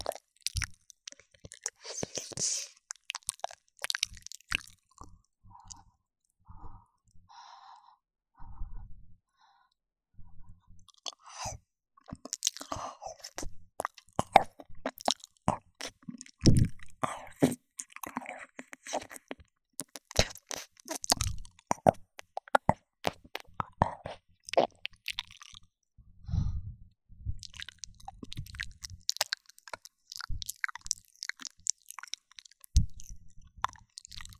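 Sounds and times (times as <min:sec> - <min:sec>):
ear licking in the right channel only: 0:00.0 - 0:05.0, 0:12.1 - 0:25.6, 0:27.4 - 0:34.3.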